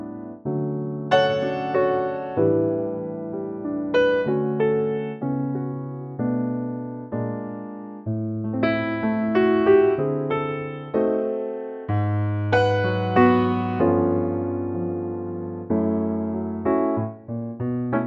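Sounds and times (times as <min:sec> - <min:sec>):
piano note D: 0:00.0 - 0:18.0.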